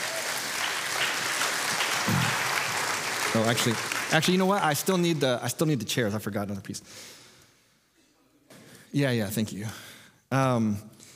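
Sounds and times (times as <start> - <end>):
audience applause: 0.0 - 5.1
speech: 3.4 - 7.2, 8.9 - 11.0.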